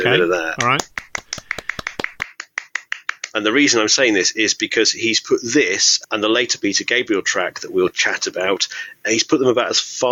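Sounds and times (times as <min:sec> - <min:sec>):
speech: 0:00.0 - 0:00.9, 0:03.4 - 0:10.1
applause: 0:00.5 - 0:03.4.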